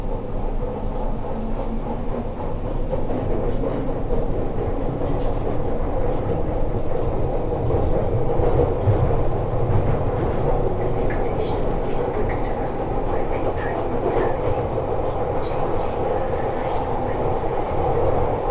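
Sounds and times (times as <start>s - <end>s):
train or tube ride rumbling to Brixton: 0.0s - 18.4s
faint voices: 10.6s - 18.4s.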